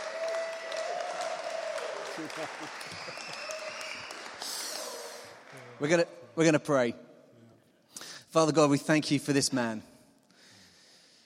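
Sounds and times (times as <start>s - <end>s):
applause at an evening church gathering in Derby welcoming a guest preacher: 0.0s - 6.0s
speech: 2.2s - 3.6s, 5.5s - 7.0s, 8.4s - 9.9s.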